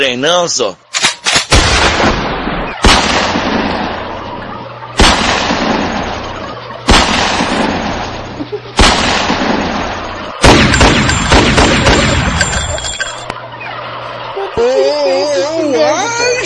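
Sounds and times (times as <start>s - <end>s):
speech: 0.0s - 0.8s
shotgun blasts: 0.9s - 13.2s
laughter: 6.0s - 6.9s, 7.7s - 8.8s, 14.0s - 16.4s.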